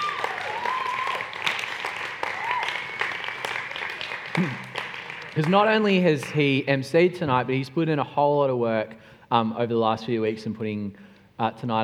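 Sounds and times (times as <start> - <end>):
audience applause: 0.0 - 6.5
speech: 4.4 - 4.7, 5.4 - 11.8.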